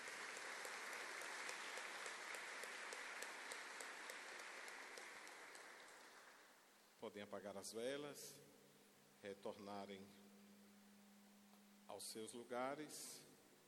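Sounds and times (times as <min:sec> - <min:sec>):
audience applause in church: 0:00.0 - 0:06.5
speech: 0:07.0 - 0:08.6, 0:09.2 - 0:10.3, 0:11.9 - 0:13.3.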